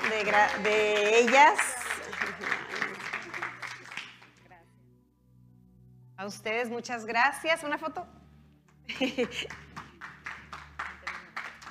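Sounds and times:
audience applause: 0.0 - 4.3, 9.3 - 11.6
speech: 0.2 - 1.8, 6.2 - 8.2, 8.9 - 9.6
laughter: 1.8 - 3.8, 8.9 - 10.0.

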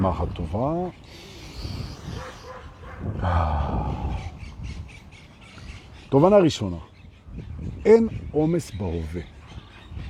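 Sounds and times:
speech: 0.0 - 2.4, 3.0 - 4.3, 6.1 - 9.3
dog barking: 2.2 - 3.1.

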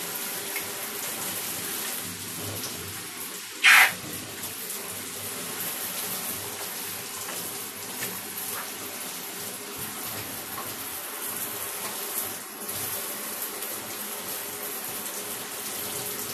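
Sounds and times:
water running like a shower or open tap: 0.0 - 16.3.

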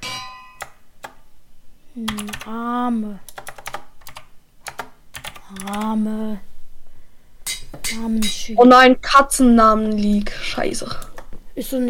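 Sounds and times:
sharp metallic clanks: 0.0 - 0.6, 7.4 - 8.5
video game anvil landing with a metallic clang: 0.0 - 0.6, 7.5 - 8.4
speech: 2.0 - 3.4, 5.5 - 6.5, 7.9 - 11.8.

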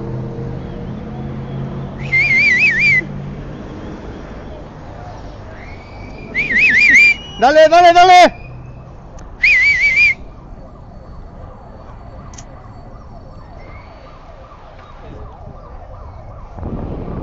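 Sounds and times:
crowd whistling: 1.5 - 3.1, 5.5 - 10.3
speech: 7.4 - 8.4.

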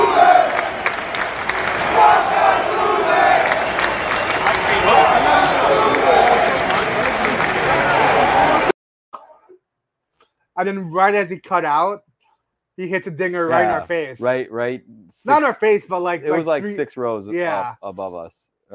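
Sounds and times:
large stadium crowd yelling together: 0.0 - 8.7
speech: 10.6 - 12.1, 12.8 - 18.7.

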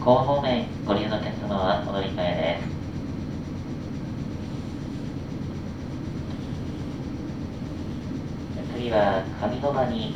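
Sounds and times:
speech: 0.1 - 2.8, 8.8 - 10.1
train wheels clattering on rails: 0.6 - 10.1.

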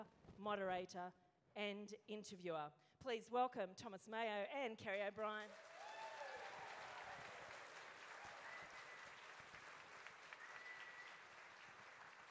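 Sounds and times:
speech: 0.0 - 5.8
audience applause: 5.5 - 12.2.

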